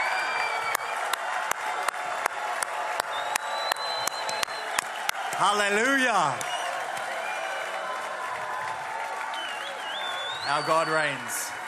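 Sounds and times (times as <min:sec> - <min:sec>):
whistles and whoops: 0:00.0 - 0:01.2, 0:03.0 - 0:05.1, 0:06.3 - 0:08.5, 0:09.1 - 0:11.5
crowd cheering with joy: 0:00.0 - 0:11.6
speech: 0:05.4 - 0:06.6, 0:10.5 - 0:11.6.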